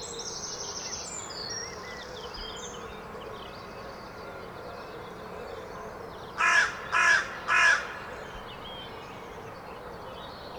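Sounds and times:
carrion crow cawing: 6.4s - 8.1s.

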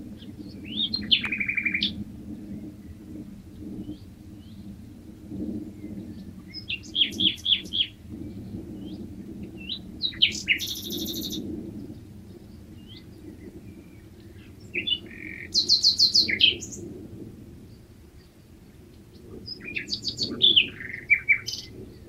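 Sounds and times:
common nightingale singing: 0.2s - 2.0s, 5.8s - 11.5s, 12.8s - 16.9s, 19.5s - 22.0s.

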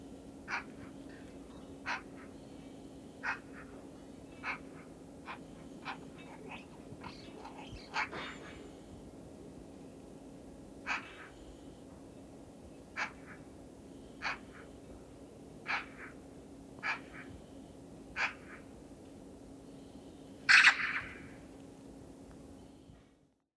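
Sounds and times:
Eurasian magpie Pica pica giving harsh scratchy calls: 0.4s - 2.5s, 3.2s - 8.7s, 10.8s - 11.5s, 12.9s - 14.9s, 15.6s - 17.4s, 18.1s - 18.8s, 20.5s - 21.5s.

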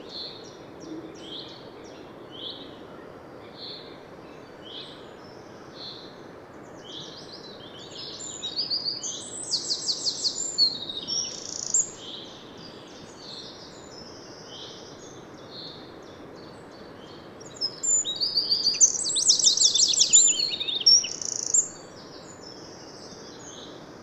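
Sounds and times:
steady background hiss: 0.0s - 24.0s
Eurasian wren song of rapid high trills: 7.2s - 15.8s, 16.7s - 23.7s.

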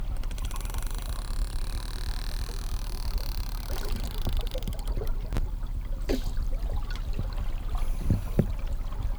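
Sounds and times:
Physeter sound stretched: 0.2s - 5.4s, 5.9s - 9.0s.

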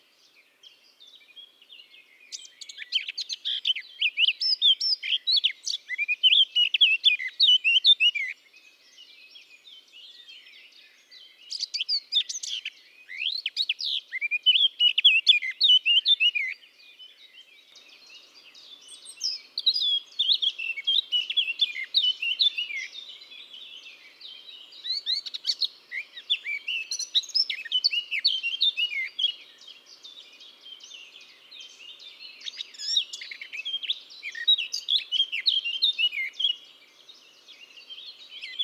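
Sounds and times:
Eurasian blackcap song: 0.2s - 38.6s.

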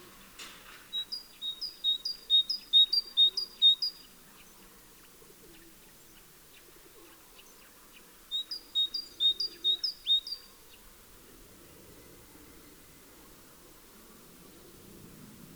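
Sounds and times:
great tit Parus major singing two-note phrases: 1.0s - 4.0s, 8.3s - 10.5s.

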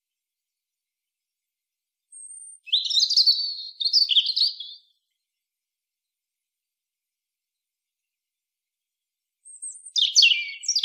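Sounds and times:
European robin singing: 2.1s - 4.9s, 9.4s - 10.8s.

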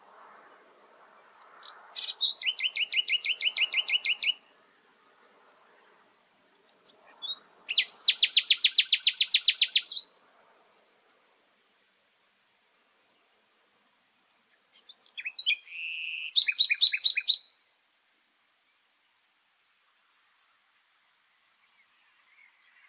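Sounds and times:
common nightingale singing: 1.6s - 4.5s, 6.7s - 10.2s, 14.3s - 17.7s, 19.6s - 22.8s.

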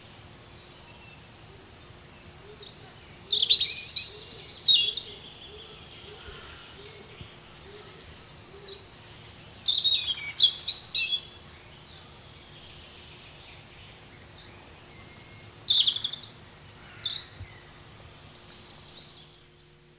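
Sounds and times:
European robin song: 0.0s - 19.7s.

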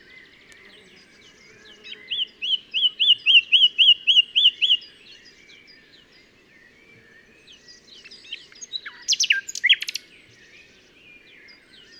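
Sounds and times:
common nightingale singing: 1.8s - 5.2s, 8.0s - 10.1s.

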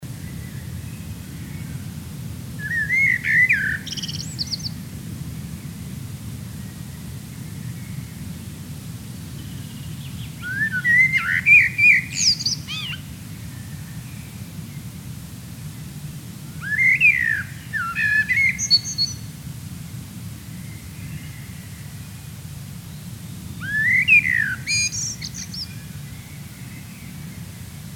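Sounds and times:
common blackbird singing: 2.6s - 4.8s, 9.4s - 14.4s, 16.6s - 19.3s, 23.6s - 27.4s.

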